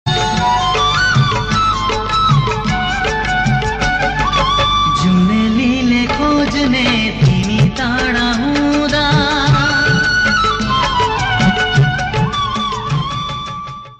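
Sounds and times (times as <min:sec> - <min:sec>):
emotional Nepali music: 0:00.1 - 0:13.9.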